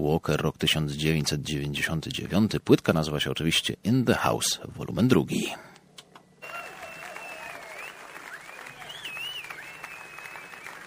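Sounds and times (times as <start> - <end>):
speech: 0.0 - 5.7
audience applause at live concert: 6.4 - 10.8.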